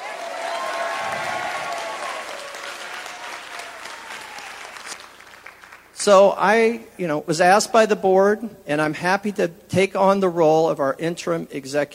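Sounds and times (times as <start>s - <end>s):
crowd applause and cheering for a departing colleague: 0.0s - 5.9s
speech: 6.0s - 11.9s.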